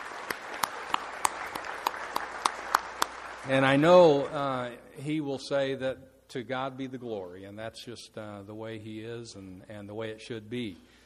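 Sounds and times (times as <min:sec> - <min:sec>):
audience applause: 0:00.0 - 0:04.2
speech: 0:03.4 - 0:11.0.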